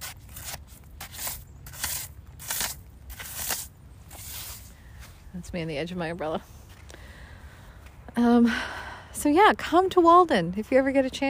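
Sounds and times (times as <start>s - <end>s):
beach sand crunching: 0.0s - 6.9s
speech: 5.4s - 6.6s, 8.2s - 11.2s.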